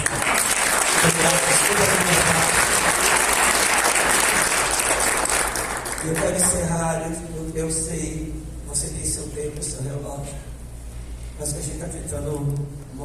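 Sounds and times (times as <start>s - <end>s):
audience applauding: 0.0s - 6.6s
speech: 6.2s - 10.5s, 11.4s - 13.0s.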